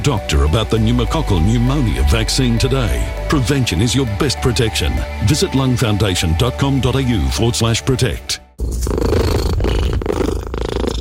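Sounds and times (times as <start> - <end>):
speech: 0.0 - 9.2
cat purring: 8.6 - 10.9.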